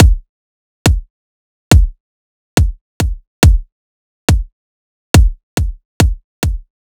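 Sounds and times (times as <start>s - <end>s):
riddim kick drum loop: 0.0s - 0.2s, 0.9s - 1.1s, 1.7s - 2.0s, 2.6s - 3.7s, 4.3s - 4.5s, 5.2s - 6.7s.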